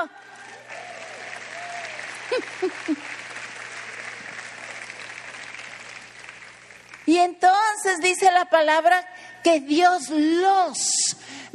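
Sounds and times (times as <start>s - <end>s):
audience applause: 0.0s - 7.1s
laughter: 2.1s - 3.3s
speech: 2.3s - 3.2s, 7.1s - 11.5s.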